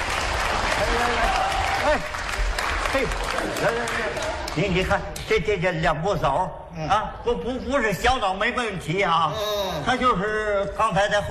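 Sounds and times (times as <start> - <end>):
audience applause: 0.0 - 4.8
speech: 1.9 - 2.2, 3.0 - 11.2.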